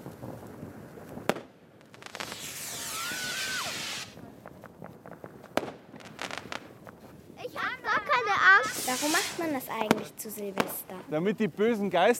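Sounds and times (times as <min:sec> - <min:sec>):
fireworks: 0:00.0 - 0:11.1
speech: 0:09.4 - 0:12.1.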